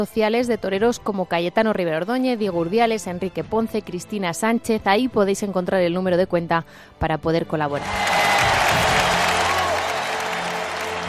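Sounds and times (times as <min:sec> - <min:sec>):
speech: 0:00.0 - 0:08.2
audience applause: 0:07.8 - 0:11.0.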